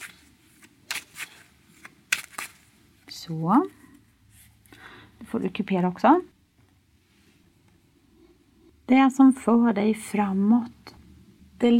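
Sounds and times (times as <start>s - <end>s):
deck of cards being shuffled for a card reading: 0.0s - 2.7s
speech: 3.2s - 3.8s, 5.3s - 6.3s, 8.9s - 10.8s, 11.6s - 11.7s.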